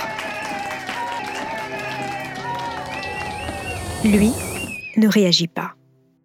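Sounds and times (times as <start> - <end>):
courtroom audience applauding loudly at the verdict: 0.0 - 4.9
speech: 4.0 - 5.8.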